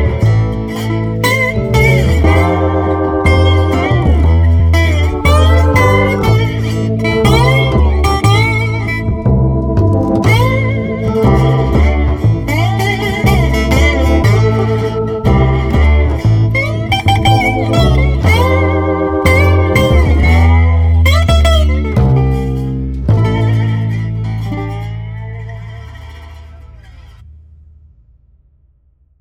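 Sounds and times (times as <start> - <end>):
blues rock slide guitar without drums: 0.0 - 27.2.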